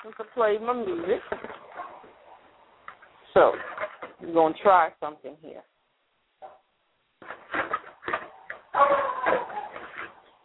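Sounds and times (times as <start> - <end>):
speech: 0.0 - 1.6, 3.4 - 5.7
dog barking: 8.8 - 9.8.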